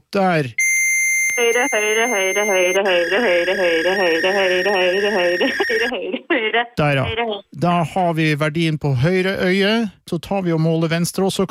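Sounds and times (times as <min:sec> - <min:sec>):
speech: 0:00.1 - 0:00.6, 0:01.4 - 0:11.4
high-pitched test beep from a phone: 0:00.6 - 0:05.9.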